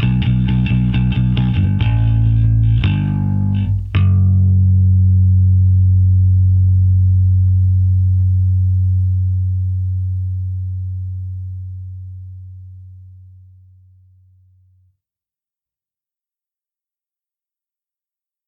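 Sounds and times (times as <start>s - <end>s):
rhythm: 0.0s - 11.2s.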